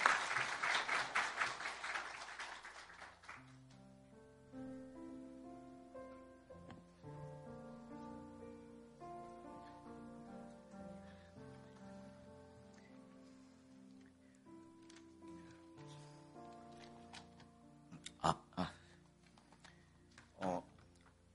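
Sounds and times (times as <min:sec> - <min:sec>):
audience applause: 0:00.0 - 0:03.5
soft sustained keyboard chords: 0:03.4 - 0:21.3.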